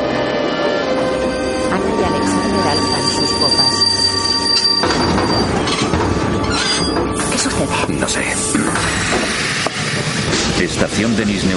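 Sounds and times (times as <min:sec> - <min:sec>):
train cars rumbling and rattling: 0:00.0 - 0:11.5
train steel wheels squealing while braking: 0:02.2 - 0:07.5
speech: 0:11.0 - 0:11.5.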